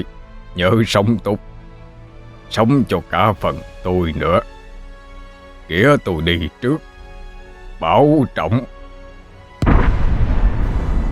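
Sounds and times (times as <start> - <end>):
speech: 0.0 - 1.5, 2.5 - 4.6, 5.7 - 6.9, 7.8 - 8.8
explosive whoosh of flames igniting: 9.6 - 11.1.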